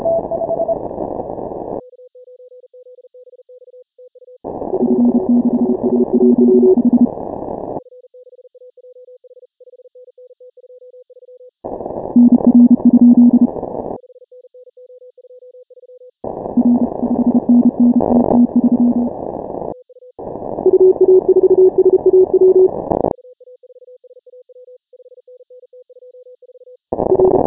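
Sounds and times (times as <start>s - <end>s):
morse code beeps: 0.0s - 0.8s, 4.8s - 7.1s, 12.2s - 13.5s, 16.6s - 19.1s, 20.6s - 22.7s, 27.1s - 27.4s.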